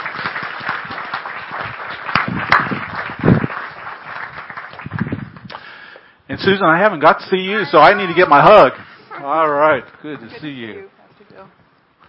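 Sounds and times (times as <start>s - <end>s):
church congregation applauding to welcome a missionary couple serving in Togo: 0.0s - 5.9s
speech: 6.4s - 11.6s.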